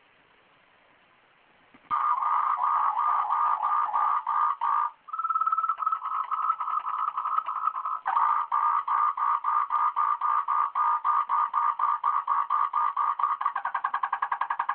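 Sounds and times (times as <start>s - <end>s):
frog calling in pulsed notes: 1.9s - 14.7s.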